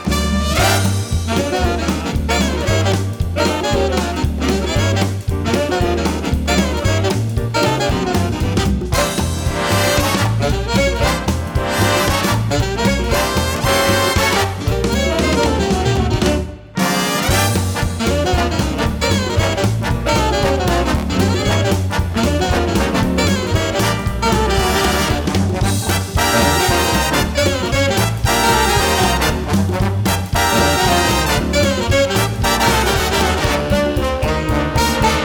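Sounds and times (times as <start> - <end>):
big band: 0.0 - 35.2.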